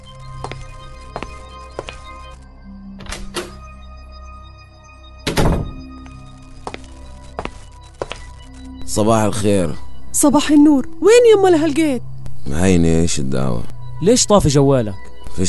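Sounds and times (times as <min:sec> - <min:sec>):
soft footsteps: 0:00.4 - 0:02.4, 0:06.5 - 0:08.5
speech: 0:08.9 - 0:15.4.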